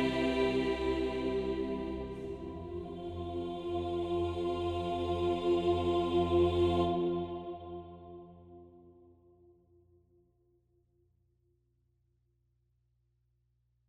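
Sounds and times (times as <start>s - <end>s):
church choir singing: 0.0s - 8.6s.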